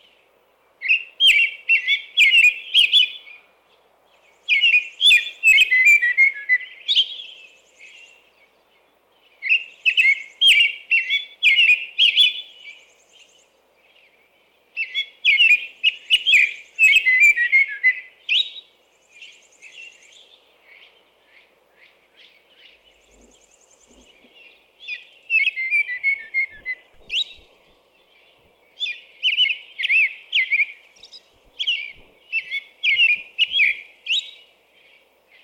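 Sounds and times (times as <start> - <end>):
American robin singing: 0.0 - 35.4.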